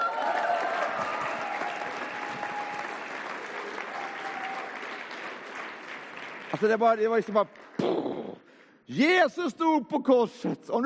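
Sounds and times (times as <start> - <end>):
audience applause: 0.0 - 7.4
speech: 6.5 - 8.0, 8.9 - 10.8.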